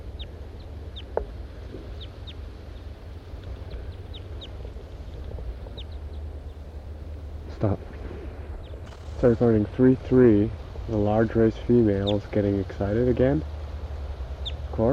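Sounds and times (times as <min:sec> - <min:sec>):
birds calling while interacting in trees: 0:00.0 - 0:14.9
low rumble: 0:00.0 - 0:14.9
speech: 0:07.6 - 0:08.0, 0:09.2 - 0:13.5.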